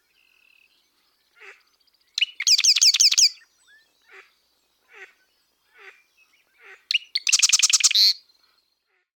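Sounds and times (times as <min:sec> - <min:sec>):
western marsh wren normal songs: 0:00.0 - 0:08.6.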